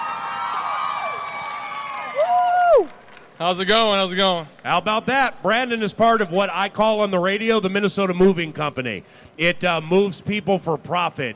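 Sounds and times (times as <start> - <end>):
crowd of children cheering and whooping: 0.0 - 3.0
applause: 0.0 - 4.8
speech: 3.4 - 11.3.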